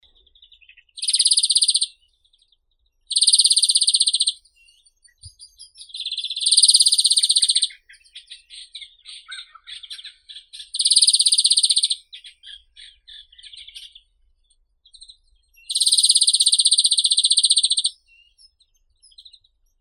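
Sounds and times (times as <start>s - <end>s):
European greenfinch Chloris chloris singing: 0.9s - 2.0s, 3.1s - 4.7s, 5.3s - 8.2s, 8.9s - 13.9s, 15.6s - 17.9s.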